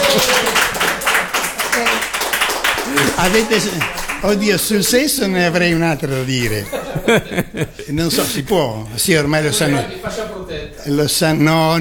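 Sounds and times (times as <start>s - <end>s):
laughter: 0.0s - 1.9s, 2.6s - 10.0s
applause: 0.0s - 5.0s
speech: 3.2s - 11.7s.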